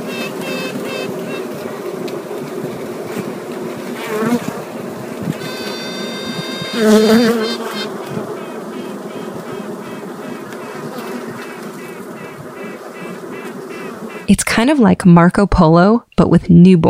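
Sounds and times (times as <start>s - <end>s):
honeybee hive droning buzz: 0.0s - 14.3s
honeybee queens quacking from their cells: 0.0s - 14.7s
thin high tone: 5.4s - 8.0s
speech: 6.8s - 7.4s, 14.6s - 16.8s.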